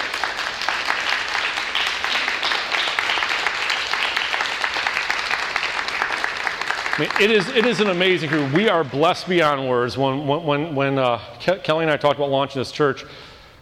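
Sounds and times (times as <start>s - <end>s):
crowd applauding church volunteers: 0.0s - 9.8s
speech: 7.0s - 13.2s.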